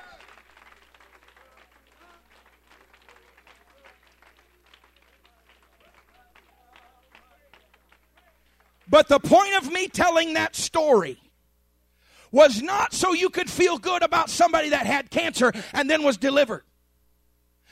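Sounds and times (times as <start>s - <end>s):
audience clapping: 0.0s - 9.0s
speech: 8.9s - 11.2s, 12.3s - 16.7s.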